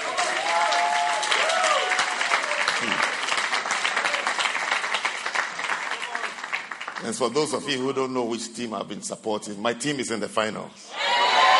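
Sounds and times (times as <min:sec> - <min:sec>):
audience applause: 0:00.0 - 0:07.6
speech: 0:07.0 - 0:11.0.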